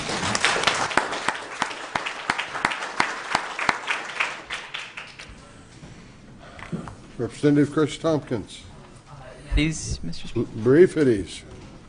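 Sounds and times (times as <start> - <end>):
small crowd applauding in a legislative chamber: 0.0 - 5.3
speech: 7.2 - 8.7, 9.6 - 11.5.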